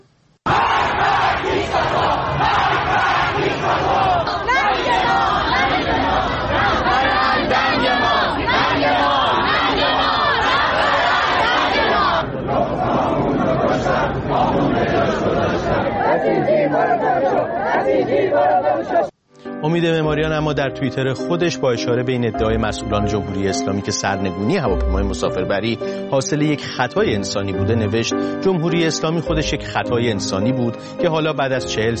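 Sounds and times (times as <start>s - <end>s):
dense overlapping chatter: 0.5s - 19.1s
large protest crowd chanting slogans: 0.5s - 19.1s
speech: 16.2s - 31.9s.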